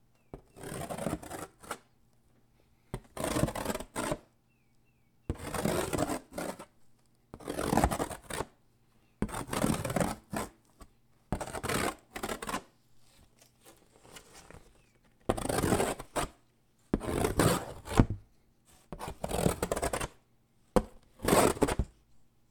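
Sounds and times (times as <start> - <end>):
scratching on cardboard: 0.3 - 1.8, 3.0 - 4.3, 5.3 - 6.7, 7.4 - 8.5, 9.2 - 10.6, 11.3 - 18.2, 18.8 - 20.2, 20.8 - 21.9.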